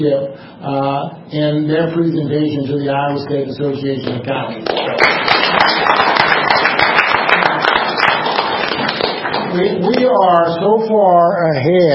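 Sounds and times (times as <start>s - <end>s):
speech: 0.0s - 5.5s, 9.5s - 11.9s
audience round of applause: 4.6s - 10.1s.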